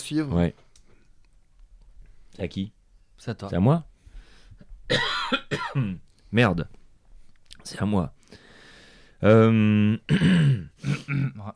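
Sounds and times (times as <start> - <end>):
speech: 0.1 - 0.7, 2.4 - 3.9, 4.9 - 6.8, 7.6 - 8.4, 9.2 - 11.5
throat clearing: 10.1 - 11.5.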